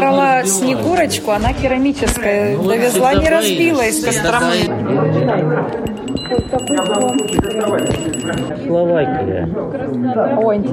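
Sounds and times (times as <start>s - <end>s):
speech: 0.1s - 10.7s
small metal souvenir bell ringing: 5.9s - 8.5s.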